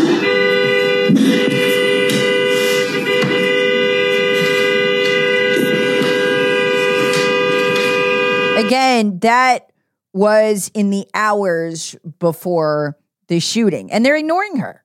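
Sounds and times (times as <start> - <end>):
car horn honking: 0.0 - 9.0
speech: 8.7 - 14.8.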